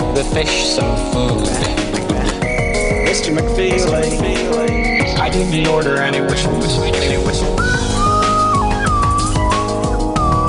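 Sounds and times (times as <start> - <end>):
speech: 0.2 - 1.9, 3.1 - 7.7
slide whistle: 2.4 - 3.3, 7.6 - 10.4.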